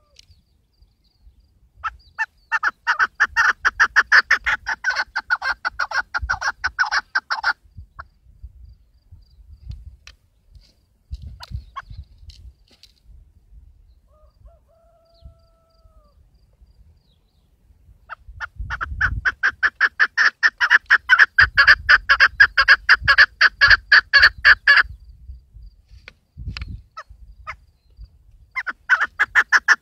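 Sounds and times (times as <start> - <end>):
keklik partridge calling: 0.0 - 8.2, 11.4 - 12.1, 18.0 - 25.0, 26.6 - 29.8.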